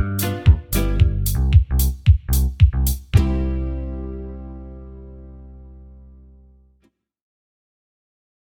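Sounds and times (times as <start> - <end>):
banjo backing track in the key of G: 0.0 - 5.3.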